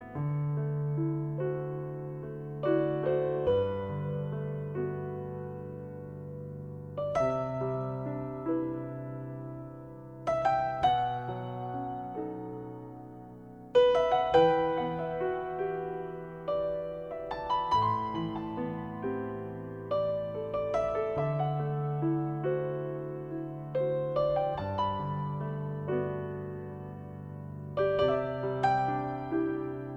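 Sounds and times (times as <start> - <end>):
piano: 0.0 - 29.9.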